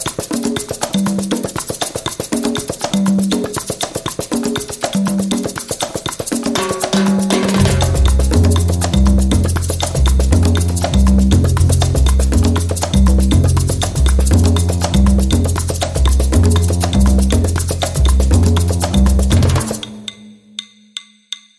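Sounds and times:
big band mambo music: 0:00.0 - 0:20.1
drum and bass: 0:06.3 - 0:20.0.

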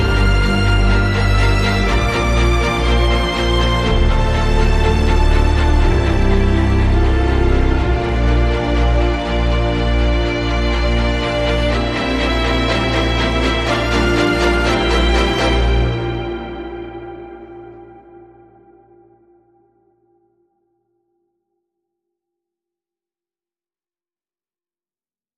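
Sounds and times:
strings: 0:00.0 - 0:20.0.

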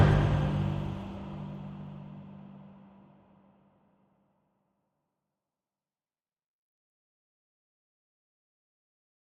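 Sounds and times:
non-staccato strings: 0:00.0 - 0:03.2.

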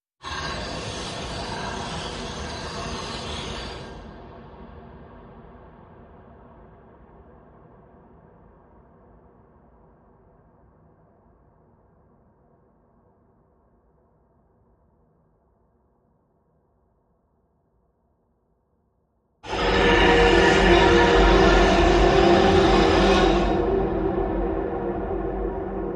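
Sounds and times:
scream: 0:00.2 - 0:04.2, 0:19.4 - 0:25.9.

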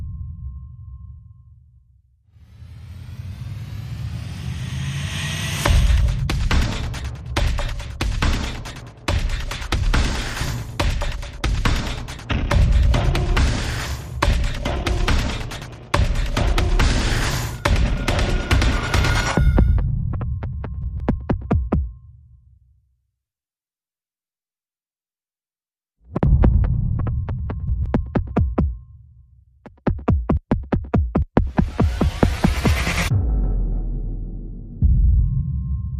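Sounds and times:
sound effects: 0:02.4 - 0:20.1, 0:31.4 - 0:35.9
percussion: 0:02.5 - 0:22.2, 0:26.1 - 0:29.0, 0:29.6 - 0:35.8.

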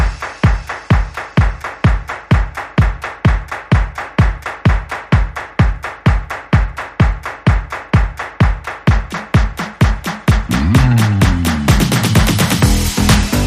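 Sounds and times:
hands clapping: 0:00.0 - 0:13.4.

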